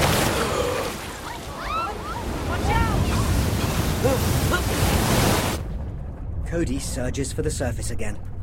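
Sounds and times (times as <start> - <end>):
heavy ocean wave crashing down: 0.0 - 5.6
speech: 6.6 - 8.3.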